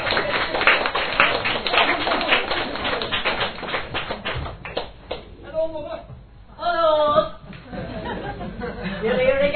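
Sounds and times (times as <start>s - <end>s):
crowd applauding: 0.0s - 5.2s
laughter: 7.4s - 9.4s.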